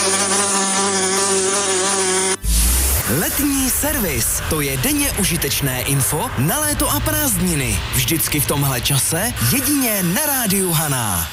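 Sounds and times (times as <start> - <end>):
wasp buzzing: 0.0 - 4.4
speech: 3.2 - 11.3.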